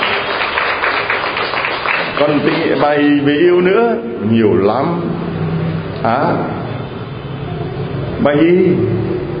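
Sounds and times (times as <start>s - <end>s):
applause: 0.0s - 3.1s
speech: 2.2s - 5.2s, 6.0s - 6.6s, 8.2s - 9.3s.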